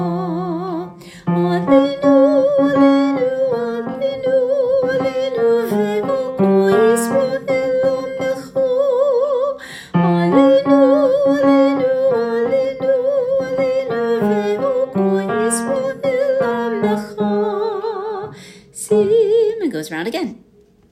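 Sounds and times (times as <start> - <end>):
tenor singing: 0.0 - 19.6.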